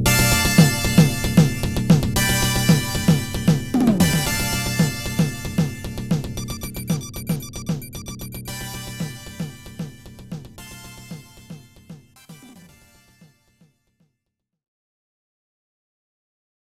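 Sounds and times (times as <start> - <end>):
inorganic electronic beat: 0.1 - 12.8.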